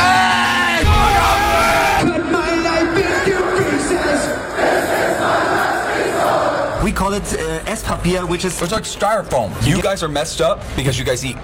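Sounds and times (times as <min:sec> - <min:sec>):
large rock festival crowd cheering: 0:00.0 - 0:06.9
speech: 0:07.2 - 0:11.4.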